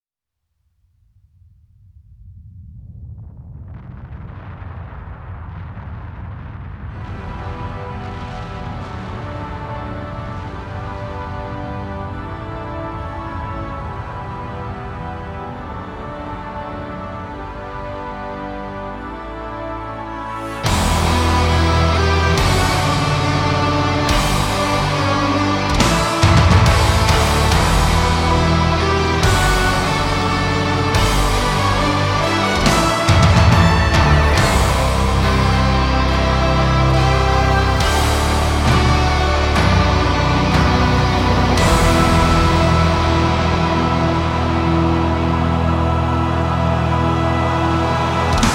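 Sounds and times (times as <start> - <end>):
instrumental music: 19.0 - 48.5.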